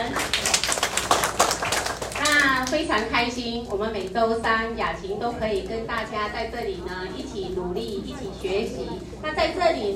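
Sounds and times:
applause: 0:00.0 - 0:03.1
speech: 0:02.7 - 0:09.9.

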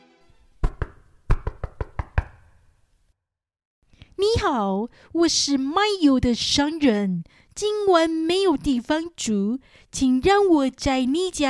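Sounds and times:
firm knocking on a door: 0:00.6 - 0:02.4
speech: 0:04.2 - 0:11.4.

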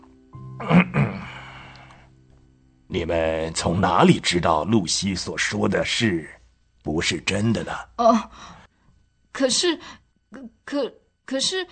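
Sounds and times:
low steady hum: 0:00.0 - 0:11.7
old professor clearing his throat: 0:00.6 - 0:01.4
speech: 0:02.9 - 0:08.6, 0:09.4 - 0:11.7.

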